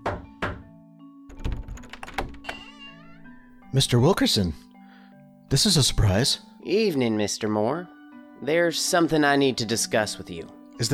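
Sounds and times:
knocking on a door: 0:00.0 - 0:00.7, 0:01.3 - 0:02.4
door latch rattling: 0:01.3 - 0:02.9
speech: 0:03.7 - 0:04.7, 0:05.5 - 0:10.9.

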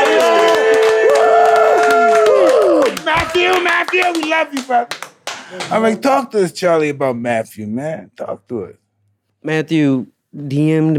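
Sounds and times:
cheers and whoops: 0:00.0 - 0:03.6
crowd clapping: 0:00.0 - 0:06.0
speech: 0:03.5 - 0:08.8, 0:09.4 - 0:10.9.

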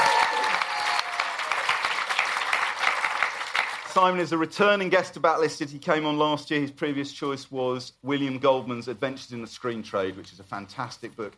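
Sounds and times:
audience round of applause: 0:00.0 - 0:04.0
speech: 0:04.0 - 0:11.3.

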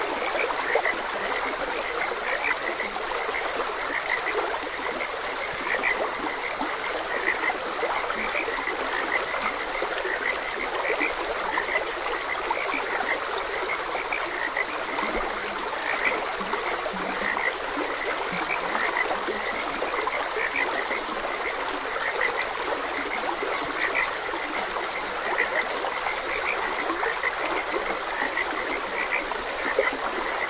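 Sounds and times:
frogs croaking: 0:00.0 - 0:30.4
stream trickling: 0:00.0 - 0:30.4.

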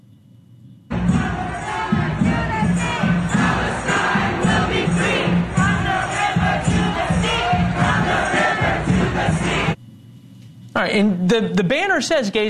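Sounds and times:
protest march crowd chanting: 0:00.9 - 0:09.8
speech: 0:10.8 - 0:12.4.

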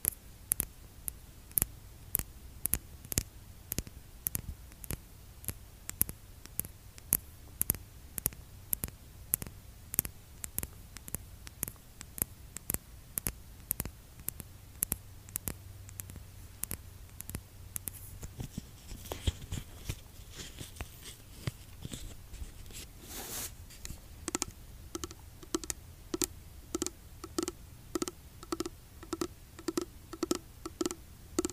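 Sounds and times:
faint low hum: 0:00.0 - 0:31.5
soft hiss: 0:00.0 - 0:31.5
fingertips tapping on a skincare product container: 0:13.7 - 0:22.9, 0:23.7 - 0:31.5.

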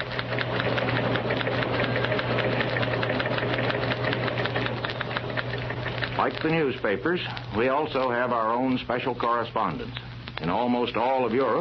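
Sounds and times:
typewriters clattering in newsroom: 0:00.0 - 0:06.8
speech: 0:06.3 - 0:11.6.

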